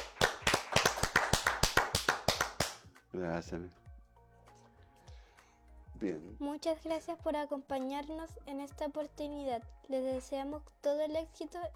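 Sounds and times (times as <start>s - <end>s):
audience applause: 0.0s - 2.8s
speech: 3.1s - 3.8s, 6.0s - 11.7s.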